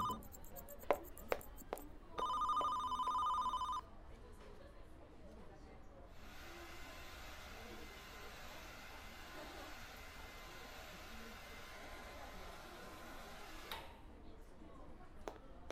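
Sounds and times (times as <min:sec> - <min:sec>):
telephone ringing: 0:00.0 - 0:03.8.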